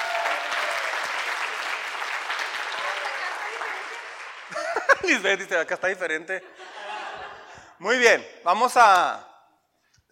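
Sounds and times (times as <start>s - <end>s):
audience applause: 0.0s - 5.3s
laughter: 4.4s - 5.5s, 6.2s - 7.8s
speech: 5.0s - 6.7s, 7.8s - 9.3s.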